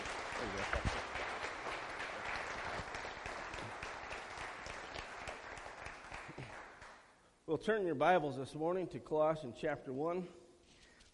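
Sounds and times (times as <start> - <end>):
audience round of applause: 0.0 - 6.9
speech: 0.4 - 1.0, 7.5 - 10.4.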